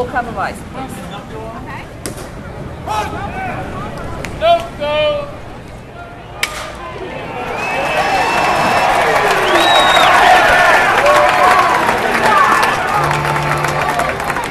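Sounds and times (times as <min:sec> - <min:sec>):
ballpark crowd cheering at baseball game: 0:02.8 - 0:14.5
crack of the bat: 0:06.4 - 0:06.9.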